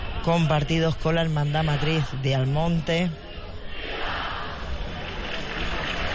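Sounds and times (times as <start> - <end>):
crowd cheering: 0.0 - 6.1
speech: 0.2 - 3.2
crowd applause: 3.9 - 6.1.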